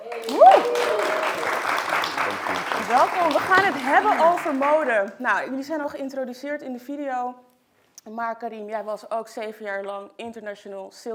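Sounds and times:
audience applause welcoming guests to a fashion talk: 0.0 - 5.1
speech: 2.9 - 11.1.

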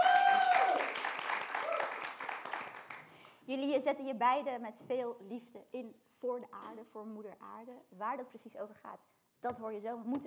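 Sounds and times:
audience applause: 0.0 - 3.1
speech: 3.5 - 10.2.

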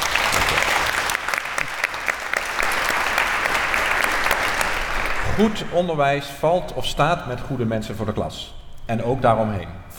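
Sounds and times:
audience applause: 0.0 - 5.4
speech: 5.4 - 9.9.

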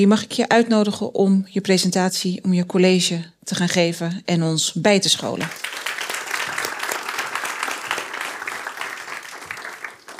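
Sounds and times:
speech: 0.0 - 5.8
audience applause: 5.5 - 10.1.

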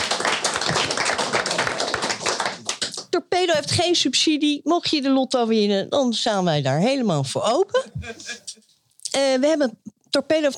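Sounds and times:
audience applause: 0.0 - 3.0
speech: 3.2 - 8.4, 9.2 - 10.5.

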